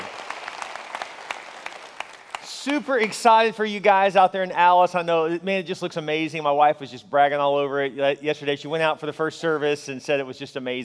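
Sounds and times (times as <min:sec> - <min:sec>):
crowd applause for a new church campus: 0:00.0 - 0:03.1
speech: 0:02.6 - 0:10.8.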